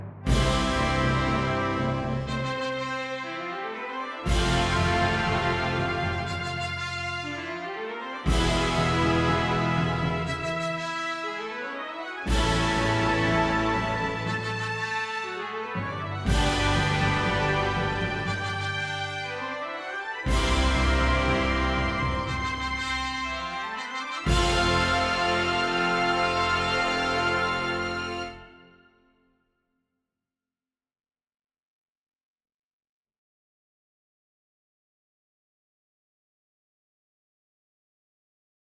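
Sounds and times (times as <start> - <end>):
horns playing warm-up in fifths: 0.3 - 28.9.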